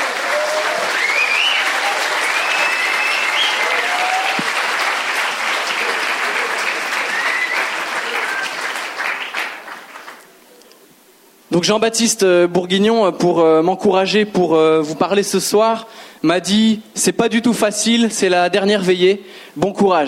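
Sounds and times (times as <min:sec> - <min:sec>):
audience applause: 0:00.0 - 0:10.3
speech: 0:11.6 - 0:20.0.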